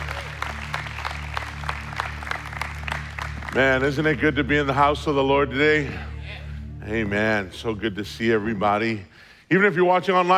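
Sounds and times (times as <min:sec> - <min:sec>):
audience clapping: 0:00.0 - 0:05.0
speech: 0:03.6 - 0:06.1, 0:06.9 - 0:10.3.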